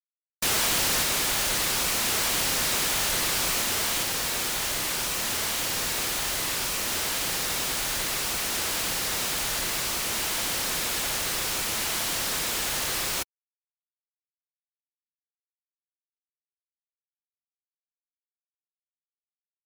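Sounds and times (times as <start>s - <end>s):
noise: 0.4s - 13.2s.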